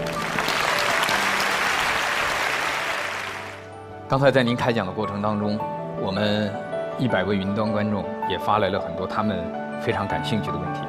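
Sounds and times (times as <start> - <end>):
audience applause: 0.0 - 3.7
speech: 4.1 - 10.8.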